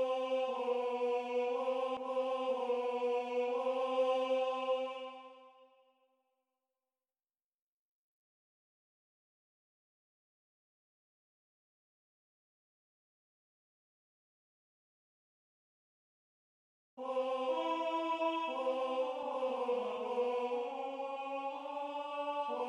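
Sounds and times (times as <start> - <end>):
tenor singing: 0.0 - 5.4, 17.0 - 22.6.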